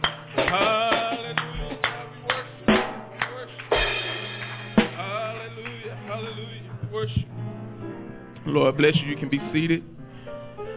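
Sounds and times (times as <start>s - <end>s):
audience clapping hands in praise: 0.0s - 5.9s
speech: 8.5s - 10.0s.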